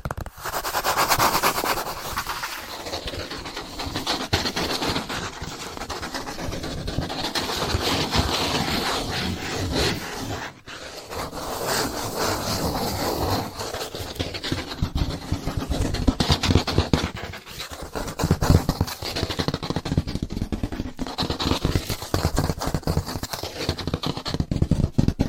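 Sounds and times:
hands tapping and scratching: 0.2 - 25.2.

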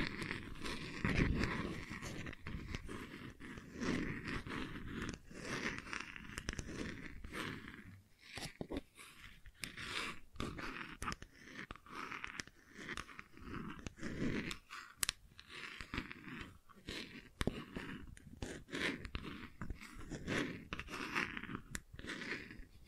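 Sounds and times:
gentle scratching: 0.0 - 22.8.

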